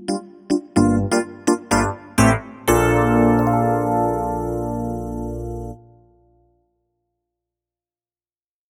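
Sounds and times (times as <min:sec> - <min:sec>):
1980s FM electric piano: 0:00.0 - 0:06.4.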